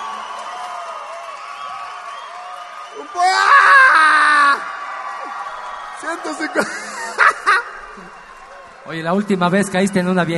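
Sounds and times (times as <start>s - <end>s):
audience applause and cheering: 0.0s - 10.3s
speech: 3.0s - 3.4s, 6.0s - 6.8s, 8.8s - 10.3s
laughter: 6.2s - 8.3s.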